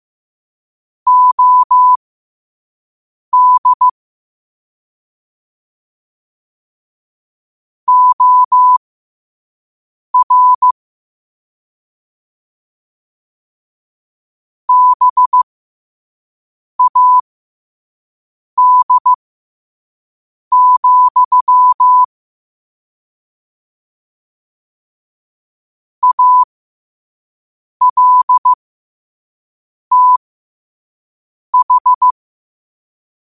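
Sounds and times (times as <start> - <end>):
morse code at 5 wpm: 1.1 - 2.0, 3.4 - 4.0, 7.9 - 8.8, 10.2 - 10.7, 14.7 - 15.4, 16.8 - 17.2, 18.6 - 19.2, 20.5 - 22.1, 26.0 - 26.5, 27.8 - 28.6, 29.9 - 30.2, 31.6 - 32.2.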